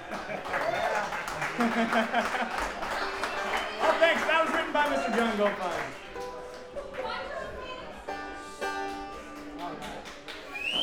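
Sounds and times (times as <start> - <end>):
laughter: 0.0 - 5.9
audience applause: 0.0 - 7.8, 9.4 - 10.8
speech: 1.6 - 2.8, 3.8 - 6.0.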